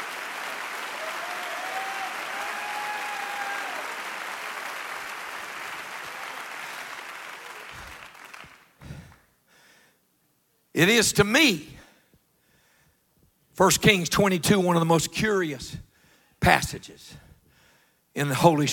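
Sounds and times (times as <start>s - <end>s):
audience clapping hands: 0.0s - 9.3s
speech: 10.8s - 11.7s, 13.6s - 17.2s, 18.2s - 18.7s.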